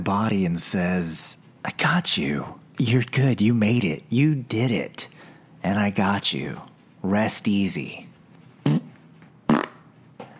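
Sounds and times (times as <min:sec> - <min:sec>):
speech: 0:00.0 - 0:08.1
wet fart: 0:08.6 - 0:09.9.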